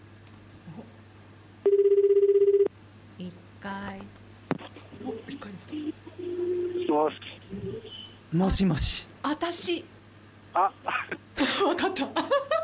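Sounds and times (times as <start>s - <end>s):
telephone ringtone as a call is placed: 1.7s - 2.7s
speech: 3.6s - 4.2s, 5.3s - 9.9s, 10.6s - 12.6s.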